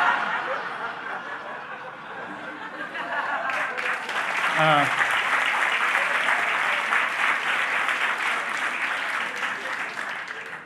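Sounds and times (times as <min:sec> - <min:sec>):
laughter: 0:00.0 - 0:05.2
people applauding: 0:03.1 - 0:10.6
speech: 0:04.6 - 0:05.0.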